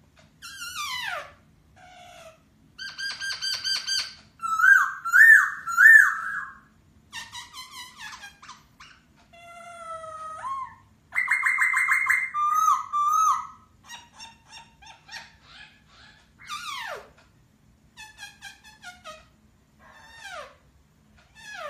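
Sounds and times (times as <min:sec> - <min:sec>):
masked laughingthrush singing: 0:02.8 - 0:08.2, 0:09.5 - 0:17.0.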